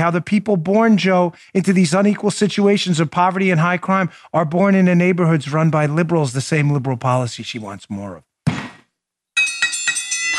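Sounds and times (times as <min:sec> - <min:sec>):
gavel raps: 0:00.0 - 0:08.3
speech: 0:00.0 - 0:08.3
bell ringing: 0:09.4 - 0:10.3.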